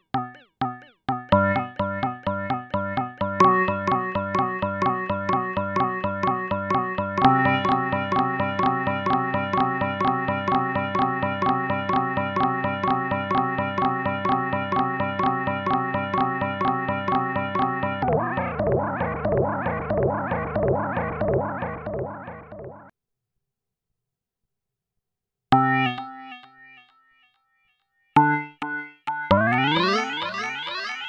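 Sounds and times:
Korg NTS 1 synthesizer with delays: 0:00.0 - 0:22.9, 0:28.2 - 0:31.0.

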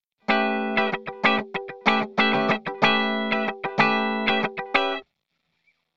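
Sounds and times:
funk music: 0:00.3 - 0:05.0.

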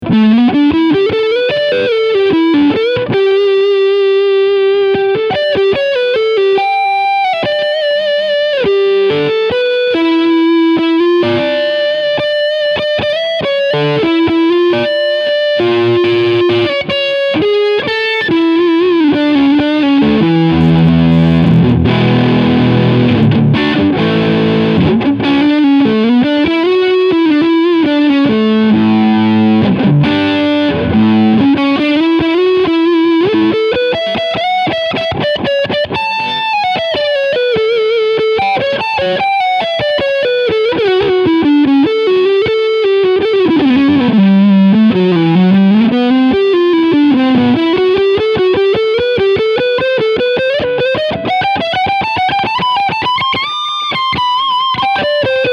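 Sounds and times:
lead guitar on front pickup: 0:00.0 - 0:55.5.

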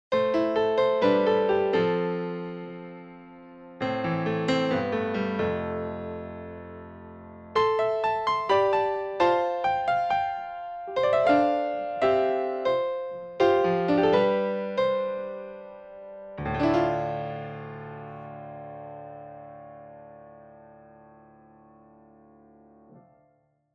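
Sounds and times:
Kontakt 7 grand piano: 0:00.1 - 0:23.3.

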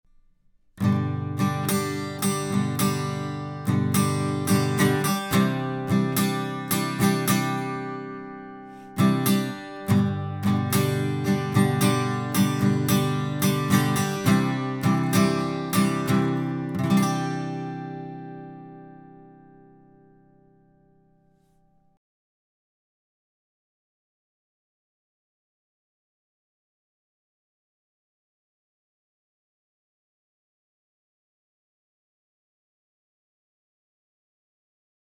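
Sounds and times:
guitar recorded with Telefunken TF39 and Lewitt microphones: 0:00.1 - 0:22.0.

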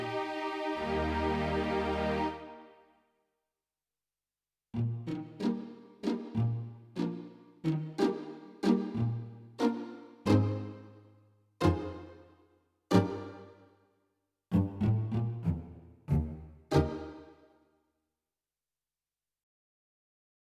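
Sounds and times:
strings: 0:00.0 - 0:02.8, 0:04.8 - 0:12.3, 0:12.9 - 0:13.7, 0:14.5 - 0:17.5.

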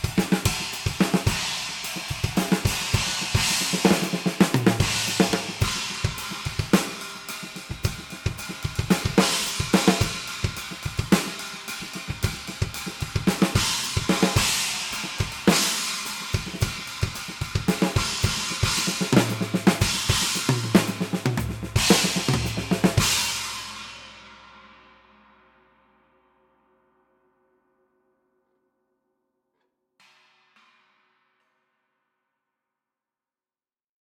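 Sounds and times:
china cymbals: 0:00.0 - 0:25.5.

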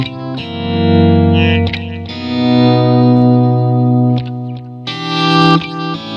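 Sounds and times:
auto volume echo effect: 0:00.1 - 0:06.0.

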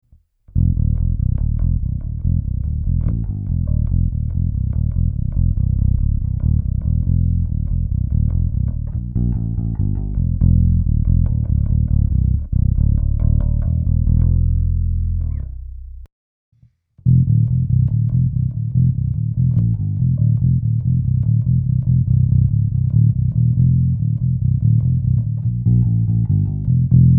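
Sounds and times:
Jazz Bass V Deluxe low B string line through speaker: 0:00.5 - 0:16.1, 0:17.0 - 0:27.1.

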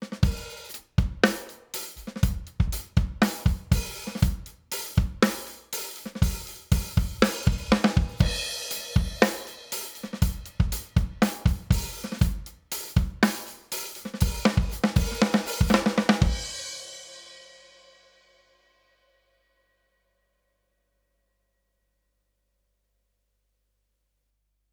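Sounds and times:
drums with two-to-one compression: 0:00.0 - 0:16.6.

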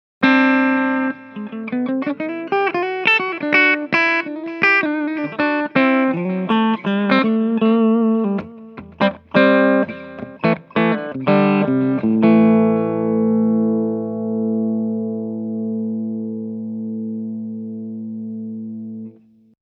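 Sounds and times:
clean guitar: 0:00.2 - 0:19.6.

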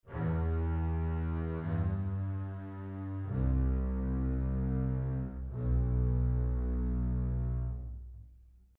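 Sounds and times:
strings playing portato: 0:00.0 - 0:08.0.

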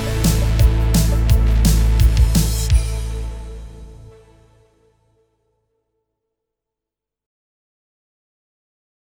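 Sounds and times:
Korg Pa5X arranger keyboard style: 0:00.0 - 0:03.0.

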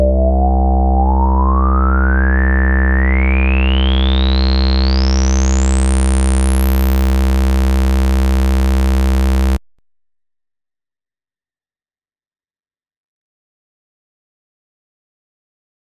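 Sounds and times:
sawtooth synth through dirty resonant low-pass filter: 0:00.0 - 0:09.6.

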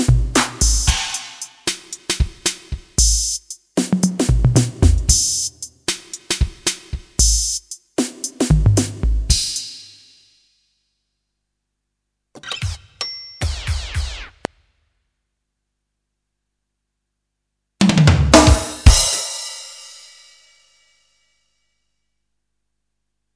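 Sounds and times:
drums: 0:00.0 - 0:10.4, 0:12.4 - 0:14.6, 0:17.8 - 0:21.0.

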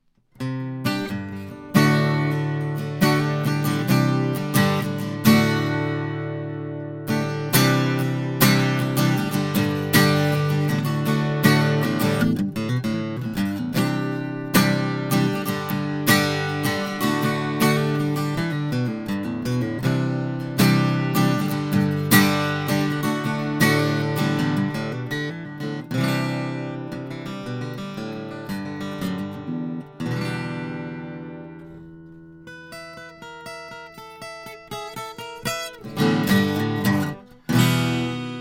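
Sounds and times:
sE 2200 guitar: 0:00.0 - 0:38.3.

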